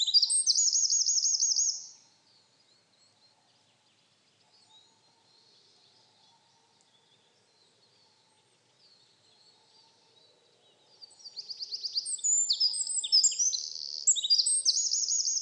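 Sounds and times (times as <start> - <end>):
Eurasian wren Troglodytes troglodytes singing: 0.0 - 2.0, 11.2 - 15.3.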